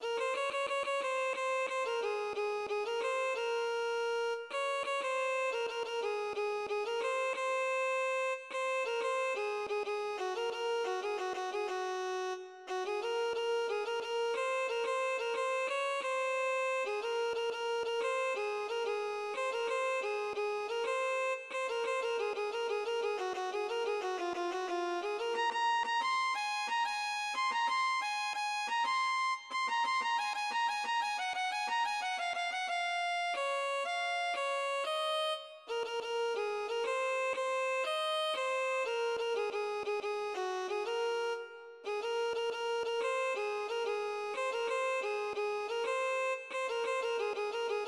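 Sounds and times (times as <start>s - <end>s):
violin: 0.0s - 47.8s.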